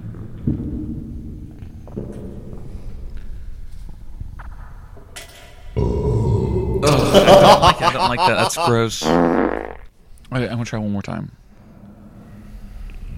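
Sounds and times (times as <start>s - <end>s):
loud exaggerated throat gulps: 5.8s - 7.3s
laughter: 6.8s - 9.1s
speech: 8.0s - 9.4s, 10.3s - 11.4s.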